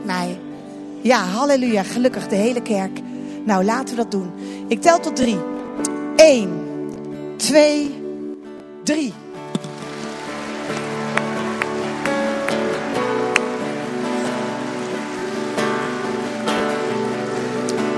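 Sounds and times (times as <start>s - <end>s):
speech: 1.0s - 5.5s, 6.2s - 6.6s, 7.4s - 8.0s, 8.8s - 9.2s
church audience clapping: 9.6s - 17.9s
sustained musical tones: 9.6s - 17.9s.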